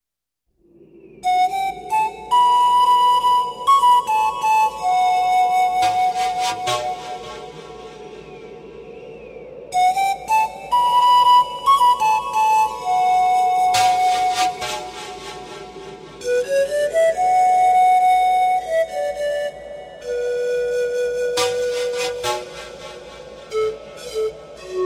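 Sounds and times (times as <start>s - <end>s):
flute: 0.6s - 24.8s.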